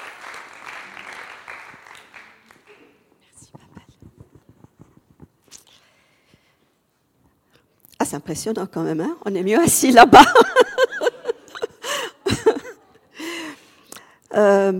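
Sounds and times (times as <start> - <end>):
audience applause: 0.0 - 2.8
speech: 8.0 - 10.6, 14.4 - 14.7.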